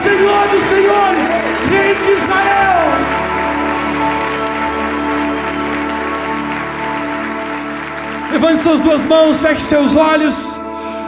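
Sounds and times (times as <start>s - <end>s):
audience applauding: 0.0s - 10.2s
droning musical backing: 0.0s - 11.0s
speech: 8.4s - 10.5s.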